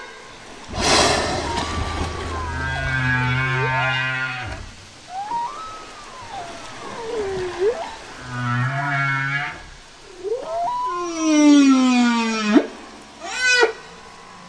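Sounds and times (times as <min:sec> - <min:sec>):
Humpback whale song with downswept chirps, whooping pulses and rising moan: 0:00.3 - 0:14.4.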